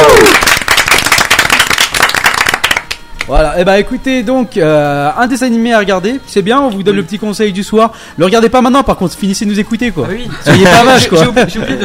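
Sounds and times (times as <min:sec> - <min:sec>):
applause: 0:00.0 - 0:03.3
speech: 0:03.3 - 0:11.8
laughter: 0:10.1 - 0:11.8.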